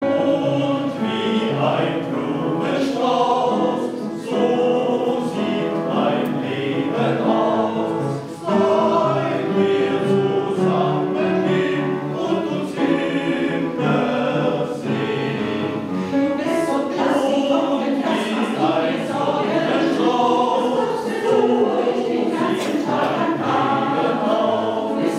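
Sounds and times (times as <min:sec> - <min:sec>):
mixed choir singing a schlager quodlibet: 0:00.0 - 0:25.1.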